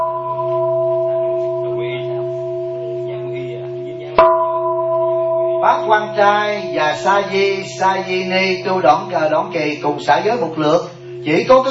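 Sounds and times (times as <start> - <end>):
bell ringing: 0.0 - 11.7
faint murmuring: 0.0 - 11.7
speech: 5.9 - 11.7.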